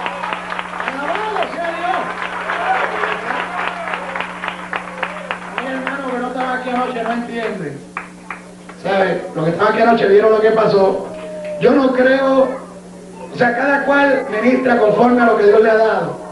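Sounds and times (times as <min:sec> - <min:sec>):
audience applause: 0:00.0 - 0:08.9
speech: 0:06.9 - 0:07.9, 0:08.8 - 0:12.6, 0:13.4 - 0:16.2.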